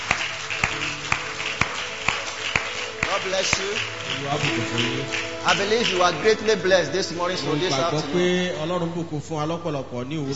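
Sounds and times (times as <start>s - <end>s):
church congregation clapping hands in time: 0.0s - 8.0s
speech: 3.2s - 10.3s.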